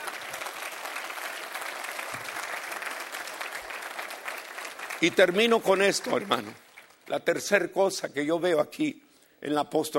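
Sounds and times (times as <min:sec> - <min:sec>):
audience applause: 0:00.0 - 0:07.1
speech: 0:05.0 - 0:09.9.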